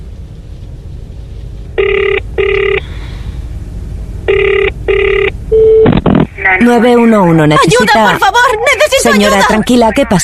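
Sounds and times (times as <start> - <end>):
low hum: 0.0 - 10.2
telephone ringing in emergency call recording: 1.8 - 2.8, 4.3 - 5.9
speech: 6.6 - 10.2.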